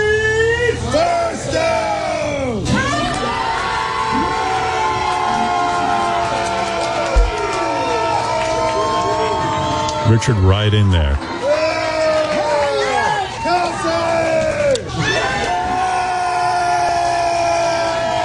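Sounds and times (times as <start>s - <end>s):
rowdy bar crowd shouting about football team: 0.2s - 18.2s
speech: 10.1s - 11.3s.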